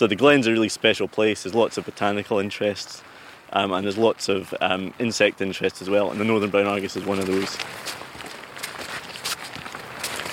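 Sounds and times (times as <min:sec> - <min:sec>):
speech: 0:00.0 - 0:08.1
footsteps walking up a grassy glen: 0:05.9 - 0:10.3.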